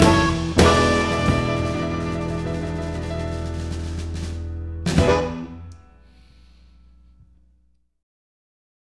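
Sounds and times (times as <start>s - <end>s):
song: 0.0s - 6.6s.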